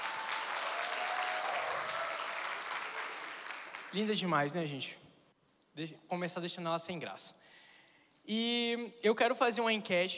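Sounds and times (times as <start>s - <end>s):
audience applause: 0.0s - 4.0s
speech: 3.9s - 5.0s, 5.8s - 7.5s, 8.2s - 10.1s.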